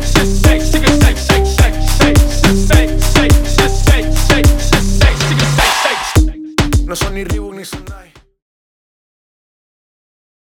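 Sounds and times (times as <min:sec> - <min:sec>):
drum beat: 0:01.0 - 0:08.2.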